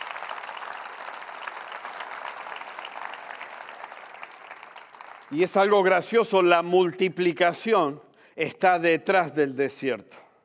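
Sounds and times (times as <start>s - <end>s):
audience applause: 0.0s - 5.8s
speech: 5.3s - 10.2s.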